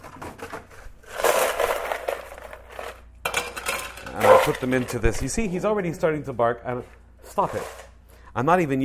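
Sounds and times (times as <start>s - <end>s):
ice cubes taken from the freezer: 1.0s - 4.8s
speech: 4.4s - 7.8s, 8.4s - 8.8s.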